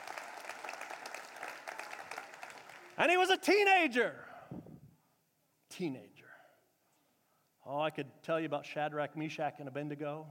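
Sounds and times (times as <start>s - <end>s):
audience clapping: 0.0s - 3.3s
speech: 3.0s - 4.3s, 5.8s - 6.2s, 7.7s - 10.2s.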